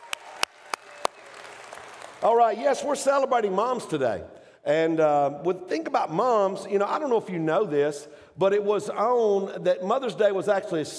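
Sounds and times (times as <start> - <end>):
sharp hand claps: 0.0 - 2.2
speech: 2.2 - 10.9.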